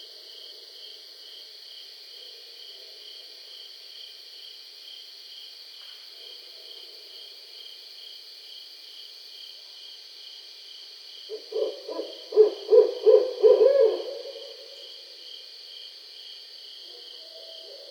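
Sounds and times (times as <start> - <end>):
Barred Owl calling: 11.3 - 14.8.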